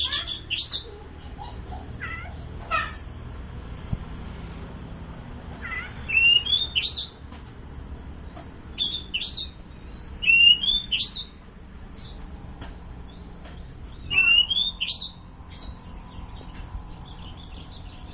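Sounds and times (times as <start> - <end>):
long-tailed shrike singing: 0.0 - 1.5, 5.4 - 7.2, 8.2 - 11.4, 13.0 - 18.1.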